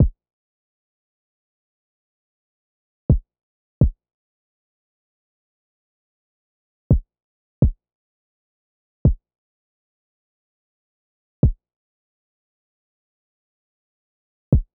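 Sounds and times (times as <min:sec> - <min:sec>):
kick drum: 0:06.9 - 0:07.8, 0:14.5 - 0:14.7.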